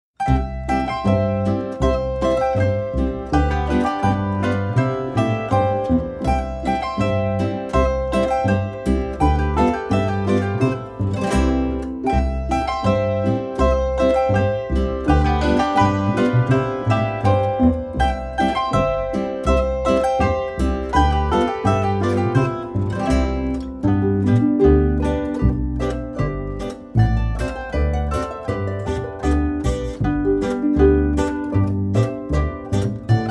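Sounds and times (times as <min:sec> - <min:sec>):
polka music: 0:00.0 - 0:33.2.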